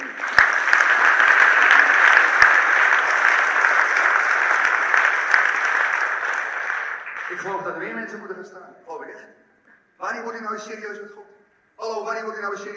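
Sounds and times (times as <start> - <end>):
audience applause: 0.0 - 8.0
speech: 7.4 - 9.4, 10.0 - 11.2, 11.8 - 12.7.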